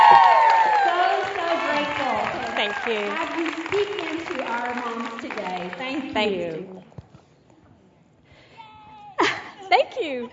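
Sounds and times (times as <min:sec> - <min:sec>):
audience at a Fearless Mom gathering applauding and cheering a guest speaker: 0:00.0 - 0:05.8
speech: 0:06.2 - 0:06.8.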